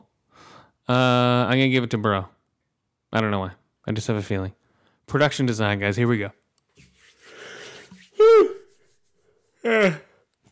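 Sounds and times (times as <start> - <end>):
speech: 0.9 - 2.4, 3.1 - 6.4, 9.6 - 10.0
person yawning: 8.2 - 8.6, 9.6 - 10.2.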